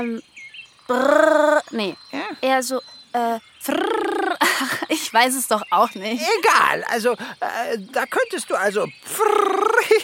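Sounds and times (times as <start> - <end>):
speech: 0.0 - 10.0
voice imitating elves flying: 0.9 - 1.7, 3.6 - 4.6, 9.1 - 10.0
laughter: 4.4 - 5.2, 9.5 - 10.0.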